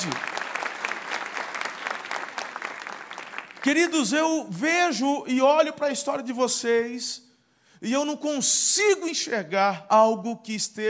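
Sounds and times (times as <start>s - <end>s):
speech: 0.0s - 0.4s, 3.6s - 10.8s
crowd applause: 0.0s - 3.8s.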